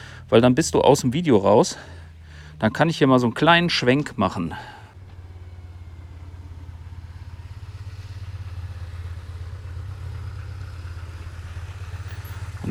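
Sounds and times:
speech: 0.3s - 2.0s, 2.6s - 4.8s
motorcycle passing by: 0.8s - 12.6s.

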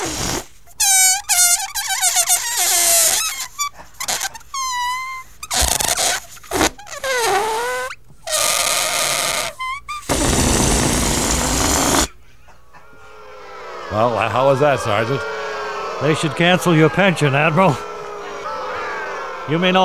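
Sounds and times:
tune played on a squeaking balloon: 0.0s - 12.1s
laughter: 12.3s - 19.8s
speech: 14.5s - 15.4s, 16.0s - 17.9s, 19.5s - 19.8s.

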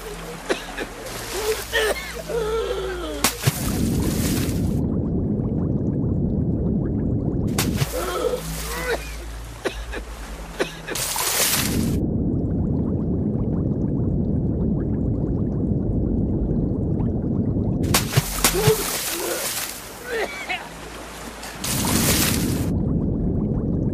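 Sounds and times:
voices: 0.0s - 3.7s, 18.3s - 20.8s
water splashing as a man falls from an overturned canoe and struggles: 0.0s - 23.9s.

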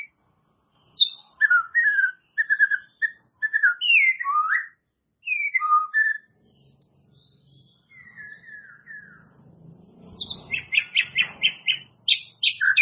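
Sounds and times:
White-rumped shama song with whistles: 0.9s - 6.3s, 7.2s - 9.3s, 10.2s - 12.7s.

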